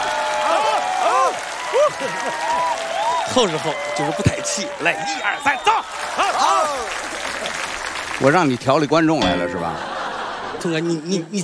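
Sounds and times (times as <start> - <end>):
audience applause: 0.0 - 9.0
laughter: 1.7 - 2.7, 9.5 - 11.4
speech: 3.4 - 7.1, 8.2 - 10.0, 10.6 - 11.4.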